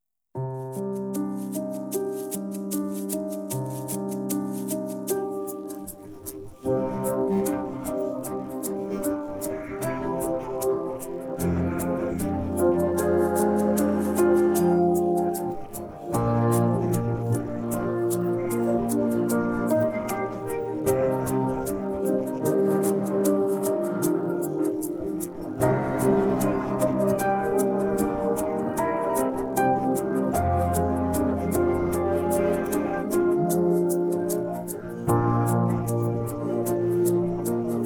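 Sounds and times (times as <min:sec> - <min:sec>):
guitar: 0:00.6 - 0:37.8.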